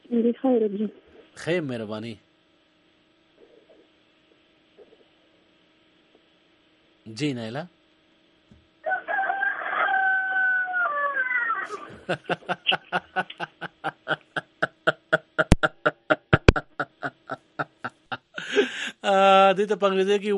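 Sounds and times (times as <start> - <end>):
speech: 0.1 - 2.3, 7.1 - 7.8, 12.1 - 13.6, 19.1 - 20.3
rooster crowing during a telephone call: 8.8 - 11.9
laughter: 11.7 - 19.1.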